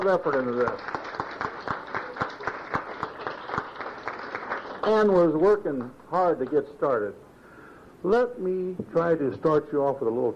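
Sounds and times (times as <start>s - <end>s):
speech: 0.0s - 1.0s, 4.8s - 7.2s, 8.0s - 10.3s
audience applause: 0.0s - 5.4s.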